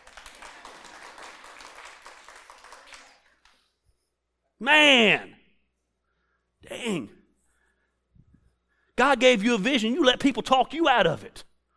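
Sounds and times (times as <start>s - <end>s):
audience clapping: 0.0s - 3.8s
speech: 4.6s - 5.3s, 6.8s - 7.2s, 9.0s - 11.5s.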